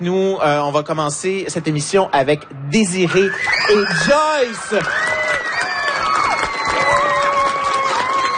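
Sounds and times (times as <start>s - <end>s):
speech: 0.0s - 5.2s
audience cheering and clapping for three school pupils: 2.8s - 8.3s.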